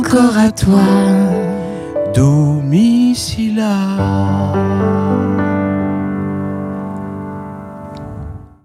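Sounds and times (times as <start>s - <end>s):
piano: 0.0s - 8.6s.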